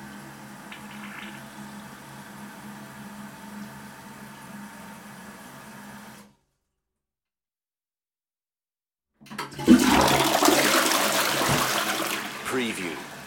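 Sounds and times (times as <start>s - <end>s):
toilet flushing: 0.0s - 6.3s, 9.2s - 13.2s.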